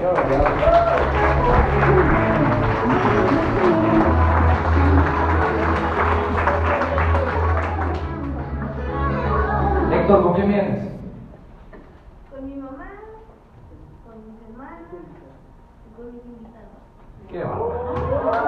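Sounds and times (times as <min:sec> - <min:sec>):
audience applause: 0:00.0 - 0:09.8, 0:17.6 - 0:18.4.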